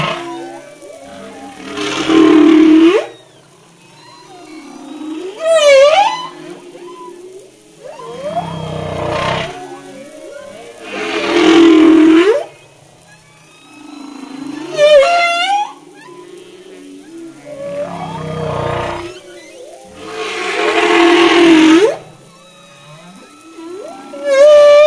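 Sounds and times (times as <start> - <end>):
humpback whale: 0.0 - 24.8.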